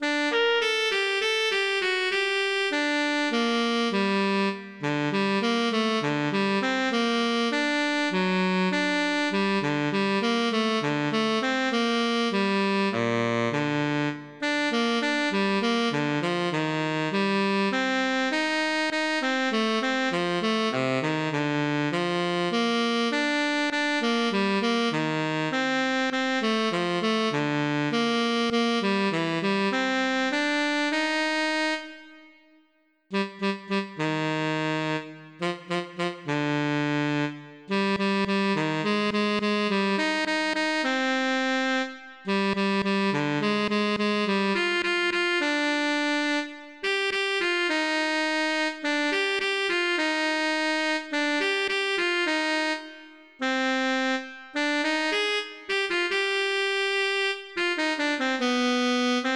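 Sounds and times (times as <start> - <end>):
classic tenor saxophone medley: 0.0 - 59.3.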